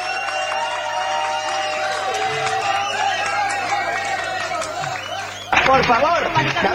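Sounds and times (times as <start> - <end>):
studio audience applause and cheering: 0.0 - 6.7
speech: 5.7 - 6.7.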